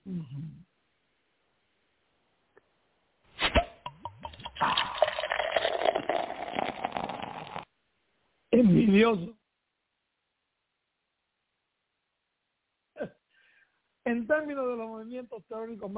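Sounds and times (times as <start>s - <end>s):
person sipping water: 3.9s - 7.6s
speech: 9.0s - 9.4s, 14.1s - 15.9s.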